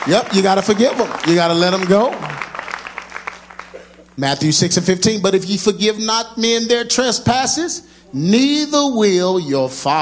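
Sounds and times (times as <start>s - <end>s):
speech: 0.0s - 2.3s, 4.2s - 10.0s
audience clapping: 0.0s - 4.2s
low steady hum: 0.0s - 10.0s.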